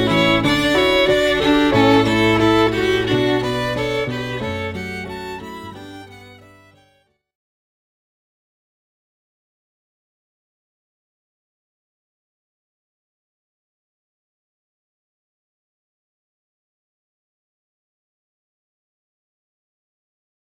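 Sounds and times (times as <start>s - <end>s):
piano playing a canon: 0.0s - 7.0s
violin playing a canon: 0.0s - 7.2s.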